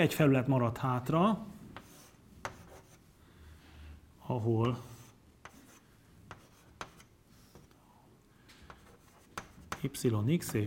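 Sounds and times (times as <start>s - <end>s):
speech: 0.0s - 1.5s, 4.3s - 4.9s, 9.8s - 10.6s
pen scratching drawing a vector arrow on a diagram: 1.8s - 3.0s, 4.8s - 7.7s, 8.7s - 10.0s.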